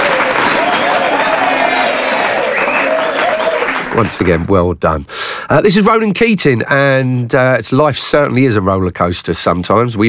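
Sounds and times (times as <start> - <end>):
round of applause: 0.0 - 4.4
speech: 4.0 - 10.0.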